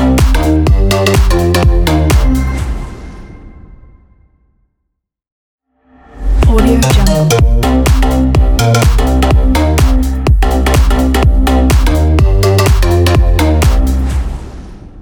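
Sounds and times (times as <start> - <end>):
dance music logo: 0.0 - 3.0, 6.2 - 14.6.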